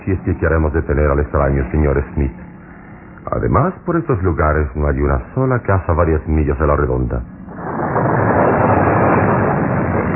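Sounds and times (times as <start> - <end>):
speech: 0.1 - 2.5, 3.3 - 7.4
thunder: 7.5 - 10.1.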